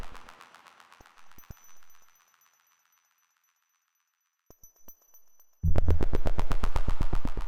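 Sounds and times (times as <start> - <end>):
frequency tone: 5.7 - 7.4.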